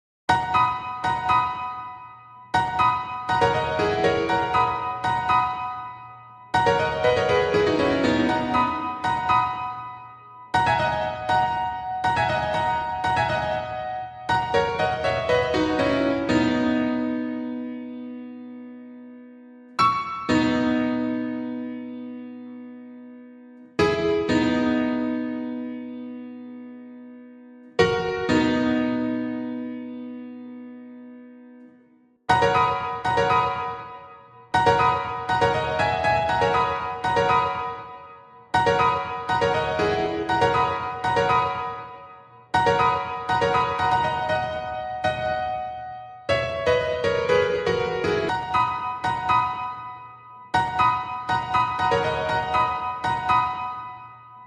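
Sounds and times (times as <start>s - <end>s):
solo piano: 0.3s - 54.4s.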